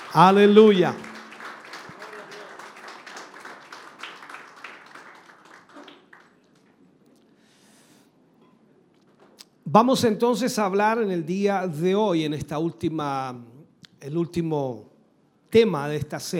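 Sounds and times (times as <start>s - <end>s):
audience applause: 0.0s - 6.9s
speech: 0.1s - 1.1s, 9.7s - 14.9s, 15.5s - 16.3s.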